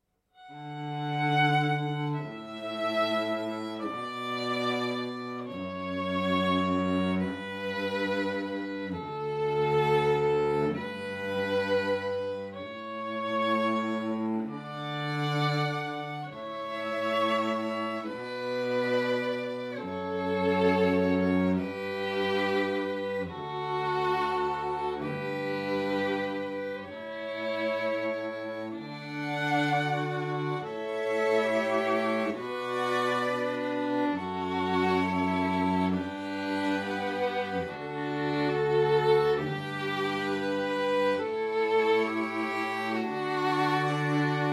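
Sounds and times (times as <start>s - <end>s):
ensemble playing: 0.5s - 44.5s.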